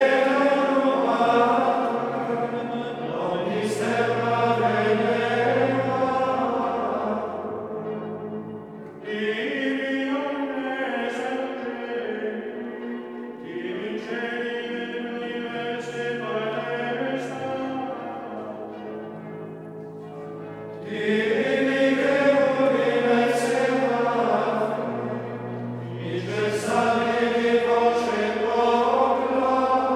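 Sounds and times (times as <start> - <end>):
male choir singing Gregorian chant: 0.0 - 19.0, 20.8 - 29.9.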